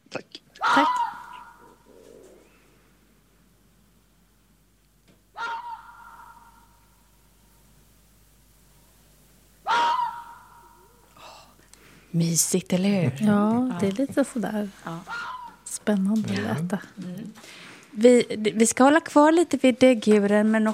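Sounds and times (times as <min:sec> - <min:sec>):
fox calling: 0:00.6 - 0:02.4, 0:05.3 - 0:07.0, 0:09.6 - 0:11.0, 0:14.9 - 0:15.7
speech: 0:00.8 - 0:01.0, 0:12.2 - 0:15.2, 0:15.9 - 0:20.7.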